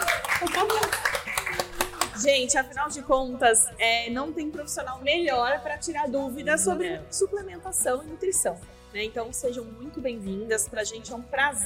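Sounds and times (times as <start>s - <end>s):
audience applause: 0.0s - 2.2s
speech: 0.5s - 1.1s, 2.2s - 11.6s.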